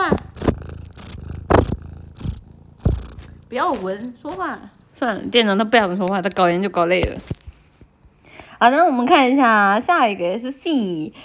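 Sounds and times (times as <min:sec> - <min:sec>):
cat purring: 0:00.0 - 0:04.8
speech: 0:03.5 - 0:07.4, 0:08.6 - 0:11.2.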